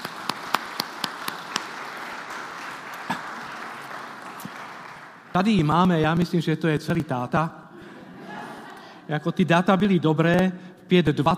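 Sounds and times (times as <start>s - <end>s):
audience applause: 0.0s - 5.4s
speech: 5.4s - 7.6s, 9.1s - 11.3s
laughter: 7.7s - 9.0s.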